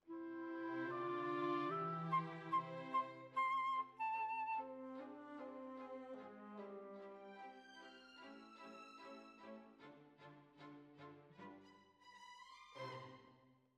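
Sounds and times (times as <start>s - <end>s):
flute: 0.0s - 8.0s.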